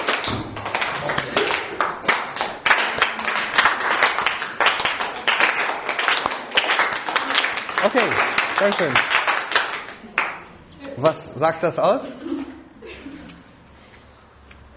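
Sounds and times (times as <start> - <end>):
group clapping hands joyfully: 0.0 - 10.5
laughter: 0.9 - 2.1, 12.0 - 13.5
speech: 7.9 - 9.2, 11.0 - 12.4.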